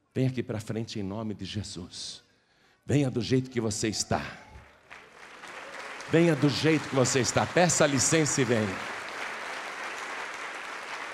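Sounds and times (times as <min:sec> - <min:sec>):
speech: 0:00.2 - 0:02.2, 0:02.9 - 0:04.5, 0:06.1 - 0:09.0
audience applauding: 0:04.6 - 0:11.1.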